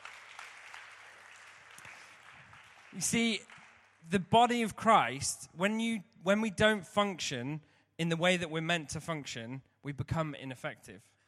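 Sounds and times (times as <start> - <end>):
audience applause: 0.0 - 4.0
speech: 3.0 - 3.5, 4.1 - 11.1.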